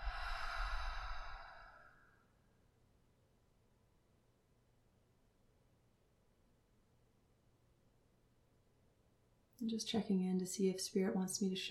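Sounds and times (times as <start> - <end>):
deep breath: 0.0 - 2.3
speech: 9.6 - 11.7.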